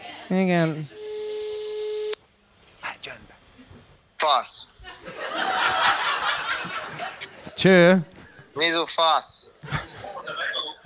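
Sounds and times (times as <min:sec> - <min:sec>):
speech: 0:00.3 - 0:01.0, 0:04.2 - 0:05.7, 0:07.6 - 0:09.8
phone call ringing tone: 0:00.9 - 0:02.2
laughter: 0:04.8 - 0:07.6, 0:09.6 - 0:10.8.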